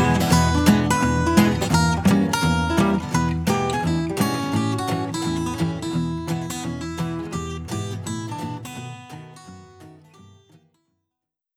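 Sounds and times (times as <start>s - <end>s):
blues music: 0.0s - 9.2s.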